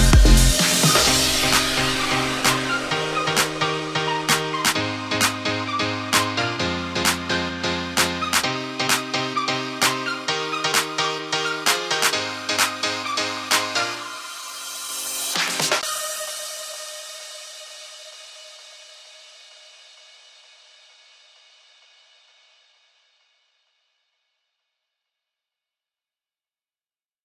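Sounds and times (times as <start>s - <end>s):
disco house music: 0.0s - 19.2s.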